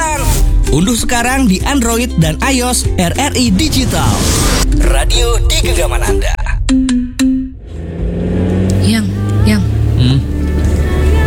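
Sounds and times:
car being driven: 0.0 - 11.2
speech: 0.7 - 7.0.

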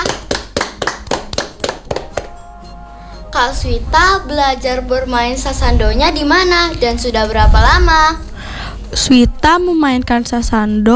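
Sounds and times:
hands clapping in steady rhythm: 0.0 - 2.8
speech: 3.4 - 8.3, 8.9 - 10.9.

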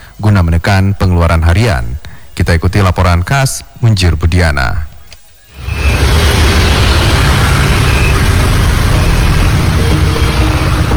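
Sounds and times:
speech: 0.2 - 4.9
vehicle engines idling at a fuel station in Banda Aceh: 5.6 - 10.9.

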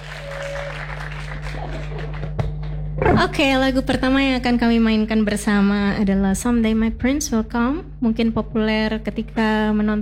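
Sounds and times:
audience applause: 0.0 - 2.8
speech: 3.2 - 9.9.

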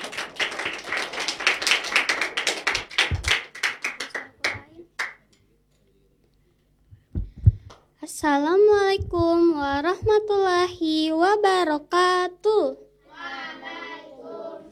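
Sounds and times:
crowd applause: 0.0 - 5.1
soft low thumps: 6.9 - 7.8, 8.6 - 10.9
speech: 8.2 - 12.8.

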